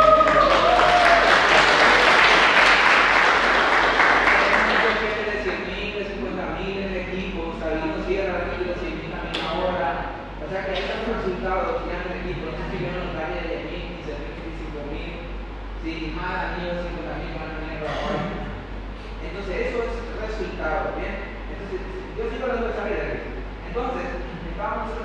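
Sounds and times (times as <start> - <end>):
audience applause: 0.0 - 5.6
man speaking: 4.3 - 25.0.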